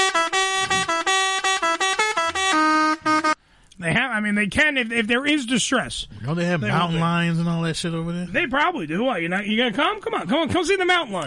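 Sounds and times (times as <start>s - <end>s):
truck horn honking: 0.0s - 3.4s
speech: 4.2s - 11.2s.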